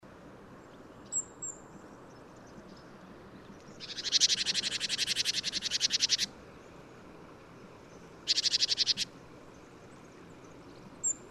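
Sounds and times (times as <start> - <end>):
Great tit churring rattle: 3.8 - 6.3, 8.3 - 9.0.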